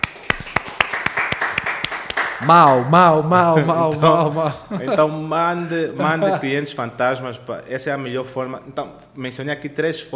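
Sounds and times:
audience clapping: 0.0s - 4.2s
speech: 2.4s - 10.1s
laughter: 2.7s - 6.6s.

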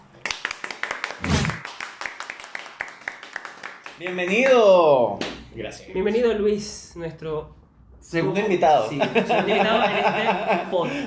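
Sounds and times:
applause: 0.0s - 5.3s
speech: 4.0s - 11.0s
laughter: 8.9s - 11.0s.

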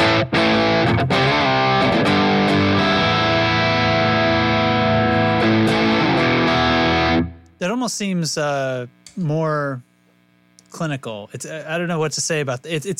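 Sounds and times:
distorted electric guitar chords, pedal in blue aggression mode: 0.0s - 7.6s
speech: 7.8s - 9.9s, 10.7s - 12.9s.

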